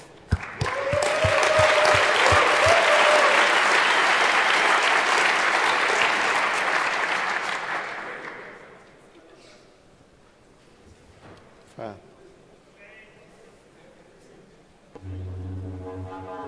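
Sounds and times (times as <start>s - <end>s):
audience applause for game show hosts: 0.4s - 8.8s.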